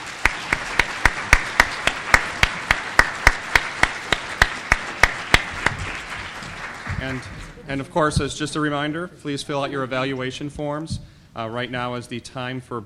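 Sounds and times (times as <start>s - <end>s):
audience applause: 0.0s - 7.6s
speech: 7.0s - 12.8s.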